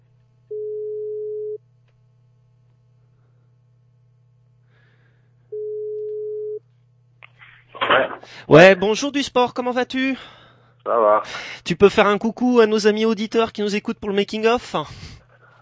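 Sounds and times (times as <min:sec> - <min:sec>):
telephone ringing tone: 0:00.5 - 0:01.6, 0:05.5 - 0:06.6
speech: 0:08.2 - 0:15.1.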